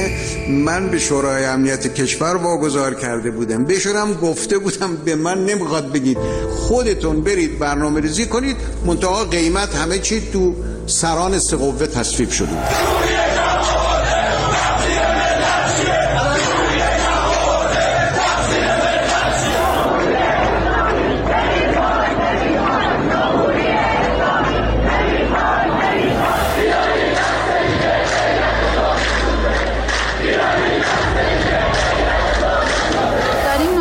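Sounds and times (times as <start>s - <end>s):
speech: 0.5s - 13.8s
street protesters chanting and shouting: 12.4s - 33.7s.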